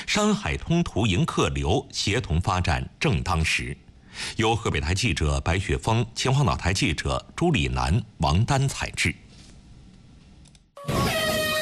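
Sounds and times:
speech: 0:00.1 - 0:09.2
horn blast starting a sailing regatta at Beidaihe New Area, Qinhuangdao: 0:10.8 - 0:11.6.

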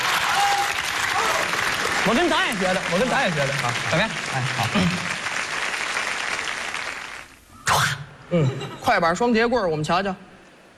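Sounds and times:
audience applause: 0:00.0 - 0:07.4
speech: 0:02.1 - 0:05.2, 0:08.3 - 0:10.2.

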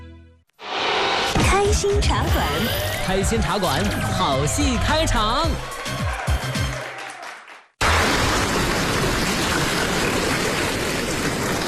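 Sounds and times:
speech: 0:01.8 - 0:06.2
audience applause: 0:04.4 - 0:11.6.

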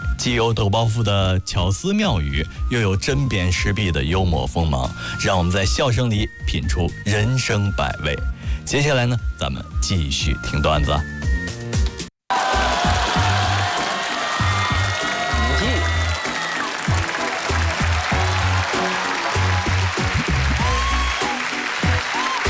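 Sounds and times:
speech: 0:00.2 - 0:11.2
people cheering: 0:12.3 - 0:22.4
warm audience applause: 0:12.3 - 0:22.4.

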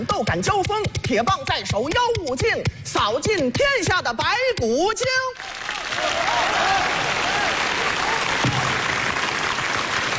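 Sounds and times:
speech: 0:00.0 - 0:07.7
audience applause: 0:05.4 - 0:10.1.

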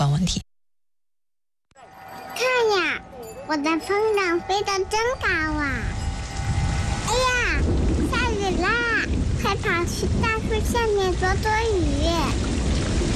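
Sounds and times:
speech: 0:00.2 - 0:00.5, 0:02.6 - 0:06.0, 0:09.5 - 0:12.5
child talking in an animated sing-song voice: 0:02.4 - 0:05.9, 0:07.1 - 0:12.4
thunder rumbling: 0:04.4 - 0:13.1
steady rain: 0:05.7 - 0:13.1.

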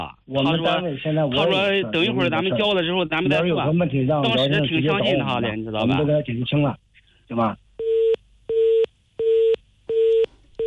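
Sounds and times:
speech: 0:00.3 - 0:07.6
phone busy tone after a hang-up: 0:07.8 - 0:10.6.

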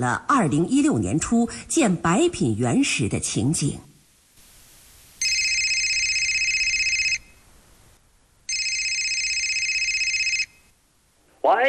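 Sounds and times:
speech: 0:00.0 - 0:03.9
telephone ringing: 0:05.2 - 0:07.4, 0:08.5 - 0:10.7.

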